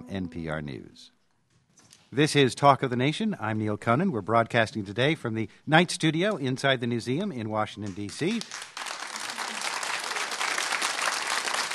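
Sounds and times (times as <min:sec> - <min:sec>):
speech: 0:00.1 - 0:01.2, 0:02.1 - 0:08.7
studio audience applause: 0:08.2 - 0:11.7.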